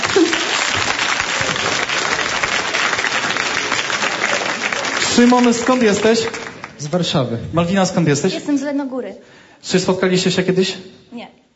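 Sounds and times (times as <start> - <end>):
audience applause: 0.0 - 7.4
speech: 5.2 - 11.5.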